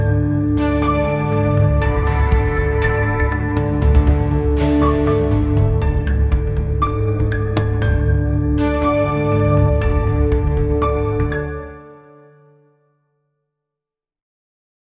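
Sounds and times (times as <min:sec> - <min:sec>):
cinematic action thriller music: 0:00.0 - 0:11.7.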